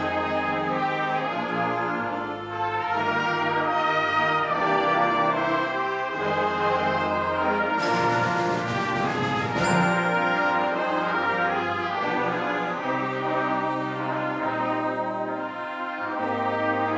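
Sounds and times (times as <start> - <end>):
band playing: 0.0 - 16.9
bells ringing: 7.8 - 11.3.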